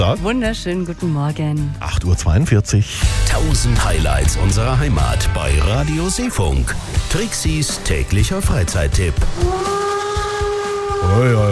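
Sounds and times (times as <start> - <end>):
speech: 0.0 - 9.8, 11.0 - 11.5
steam locomotive whistle: 9.3 - 11.5.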